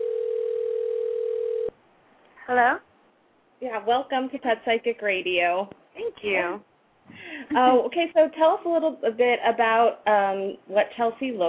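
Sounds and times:
telephone dial tone while placing call: 0:00.0 - 0:01.7
speech: 0:02.5 - 0:02.9, 0:03.6 - 0:06.7, 0:07.4 - 0:11.4.

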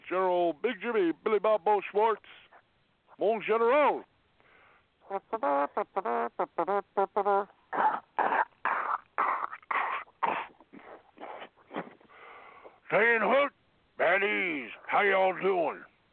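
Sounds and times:
speech: 0:00.1 - 0:02.4, 0:03.2 - 0:04.1, 0:05.1 - 0:07.6, 0:12.9 - 0:13.5, 0:14.2 - 0:15.9
belch: 0:07.7 - 0:12.2.

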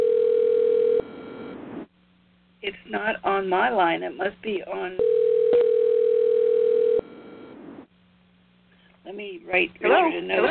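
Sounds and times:
steady loud electronic telephone tone: 0:00.0 - 0:01.8, 0:05.0 - 0:07.7
speech: 0:02.9 - 0:05.2, 0:09.1 - 0:10.4.

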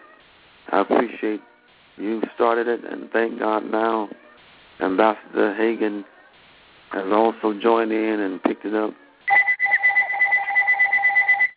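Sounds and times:
speech: 0:00.8 - 0:06.2, 0:06.9 - 0:09.0
phone ringing with electronic two-tone warble: 0:09.3 - 0:11.5.

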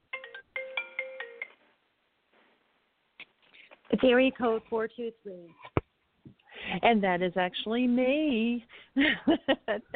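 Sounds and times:
telephone ringtone of bright electronic beeps for an incoming caller: 0:00.1 - 0:01.5
speech: 0:03.9 - 0:05.6, 0:06.8 - 0:09.9.

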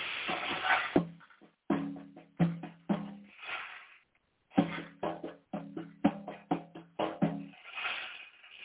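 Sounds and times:
ocean drum: 0:00.3 - 0:03.5, 0:04.5 - 0:07.7.

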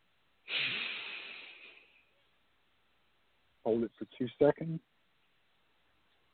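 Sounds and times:
deep breath exhaled during a guided breathing exercise: 0:00.5 - 0:01.9
speech: 0:03.6 - 0:04.9.

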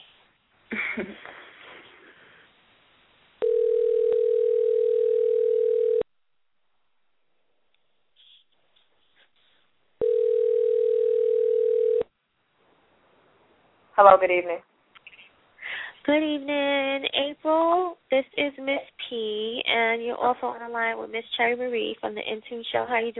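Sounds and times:
speech: 0:01.0 - 0:01.4, 0:14.1 - 0:14.7, 0:16.0 - 0:23.1
telephone call ringback tones: 0:03.4 - 0:06.0, 0:10.0 - 0:12.1.

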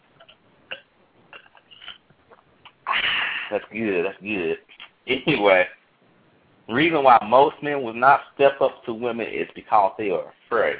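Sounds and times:
person sipping a drink: 0:00.2 - 0:03.5
speech: 0:03.5 - 0:05.8, 0:06.7 - 0:10.7.

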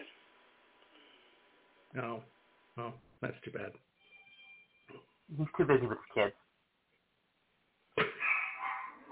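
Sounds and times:
speech: 0:03.2 - 0:03.9, 0:05.3 - 0:06.4
dogs barking: 0:08.0 - 0:09.1.

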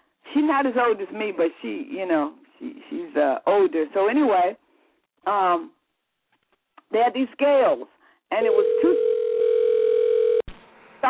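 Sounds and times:
speech: 0:00.4 - 0:04.6, 0:05.2 - 0:05.8, 0:06.9 - 0:09.1
phone ringing tone: 0:08.5 - 0:10.5.

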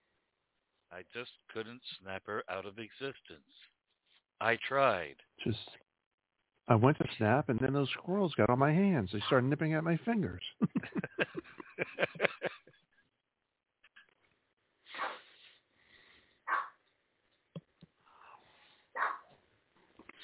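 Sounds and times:
speech: 0:00.9 - 0:03.7, 0:04.4 - 0:05.8, 0:06.7 - 0:12.3
laughter: 0:10.4 - 0:12.8
dog barking: 0:16.5 - 0:16.8, 0:19.0 - 0:19.3.

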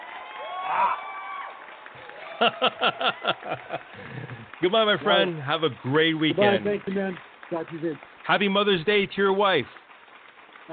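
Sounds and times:
canned crowd cheering and whooping: 0:00.0 - 0:04.6
canned clap track unison claps: 0:01.2 - 0:10.7
laughter: 0:02.0 - 0:07.1
speech: 0:02.4 - 0:09.8.

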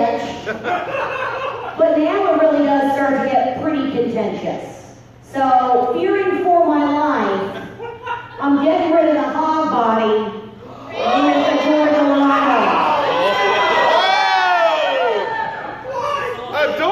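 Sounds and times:
laughter: 0:00.0 - 0:02.4, 0:07.3 - 0:09.0
speech: 0:00.2 - 0:01.2, 0:01.8 - 0:07.6, 0:08.4 - 0:10.4
crowd of people screaming: 0:10.7 - 0:16.8.

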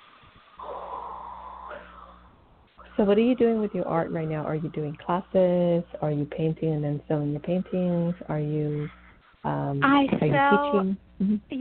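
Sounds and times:
deep breath drawn in and slowly exhaled: 0:00.6 - 0:03.0
speech: 0:03.0 - 0:11.5.

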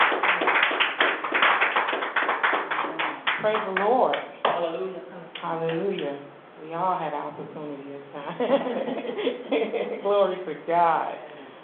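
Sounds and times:
church congregation clapping in praise: 0:00.0 - 0:04.7
speech: 0:03.4 - 0:11.3.

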